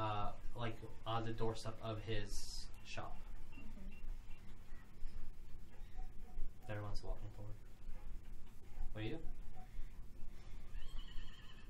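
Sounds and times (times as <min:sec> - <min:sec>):
steady low rumbling hiss: 0:00.0 - 0:11.6
speech: 0:00.6 - 0:04.0, 0:06.7 - 0:07.7, 0:09.0 - 0:09.4
horse neighing in the background: 0:10.7 - 0:11.6.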